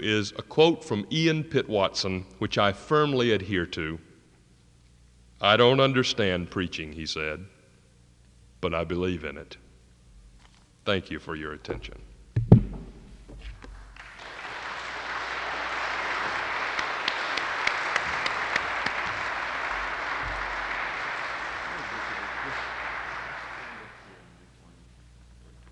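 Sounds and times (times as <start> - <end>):
speech: 0.0 - 4.1, 5.4 - 7.5, 8.6 - 9.6, 10.8 - 12.1
audience applause after a sermon: 13.8 - 24.3.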